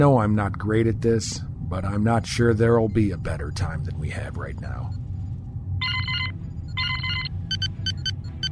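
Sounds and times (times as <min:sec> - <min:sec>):
speech: 0:00.0 - 0:05.0
low engine-like rumble: 0:00.0 - 0:08.5
comm panel electronic alert bursts: 0:05.8 - 0:08.5
comm panel short high beeps: 0:06.6 - 0:08.5.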